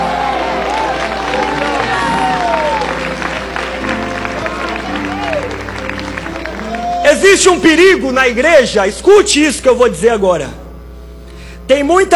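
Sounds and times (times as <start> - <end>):
scattered clapping: 0.0 - 7.0
audience shouting glory to God: 0.0 - 7.9
speech: 7.2 - 10.6, 11.7 - 12.1.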